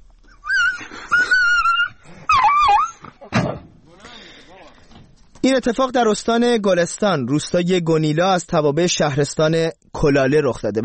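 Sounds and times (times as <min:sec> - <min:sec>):
dog crying in distress: 0:00.3 - 0:03.2
speech: 0:05.4 - 0:10.8.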